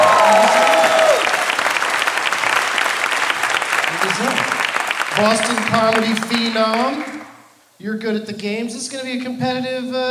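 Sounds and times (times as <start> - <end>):
audience applause welcoming a guest onto a comedy show: 0.0 - 7.4
speech: 5.2 - 7.1, 7.8 - 10.0.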